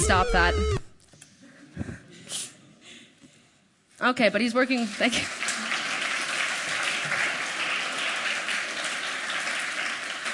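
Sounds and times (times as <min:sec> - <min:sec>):
speech: 0:00.1 - 0:00.8, 0:04.0 - 0:05.4
audience clapping: 0:04.8 - 0:10.3.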